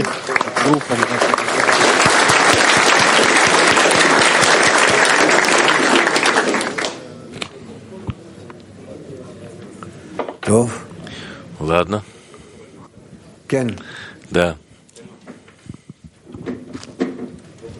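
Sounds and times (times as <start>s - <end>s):
crowd applause: 0.0s - 7.2s
murmur: 0.0s - 17.7s
speech: 0.7s - 1.4s, 10.6s - 10.8s, 11.7s - 12.1s, 13.5s - 14.6s.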